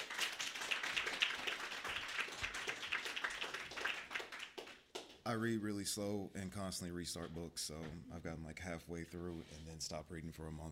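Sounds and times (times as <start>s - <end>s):
audience clapping: 0.0s - 5.3s
speech: 5.3s - 10.7s.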